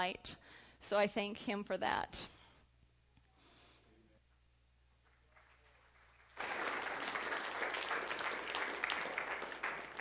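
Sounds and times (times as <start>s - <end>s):
speech: 0.0s - 2.4s
audience applause: 5.2s - 10.0s.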